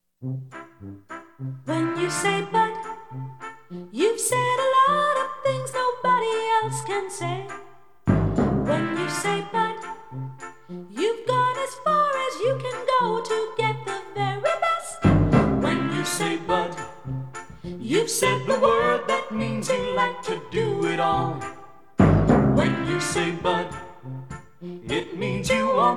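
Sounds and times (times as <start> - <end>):
jingle: 0.5 - 25.9.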